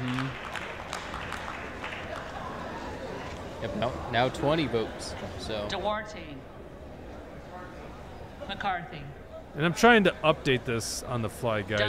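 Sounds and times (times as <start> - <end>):
crowd clapping in chamber: 0.0 - 3.6
speech: 3.6 - 6.5, 8.5 - 11.8.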